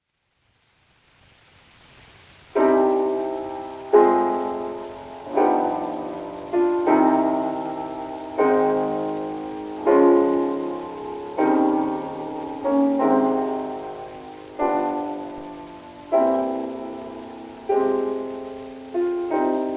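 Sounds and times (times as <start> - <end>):
prelude: 2.6 - 19.7.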